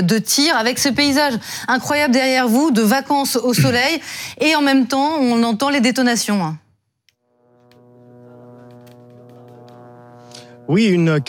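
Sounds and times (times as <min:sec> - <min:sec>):
speech: 0:00.0 - 0:06.6, 0:10.7 - 0:11.2
reconnaissance drone buzzing overhead: 0:07.2 - 0:11.2.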